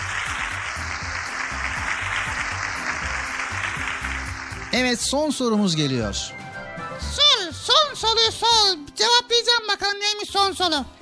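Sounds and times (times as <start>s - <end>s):
children applauding: 0.0s - 5.3s
speech: 4.8s - 6.4s, 8.0s - 10.9s.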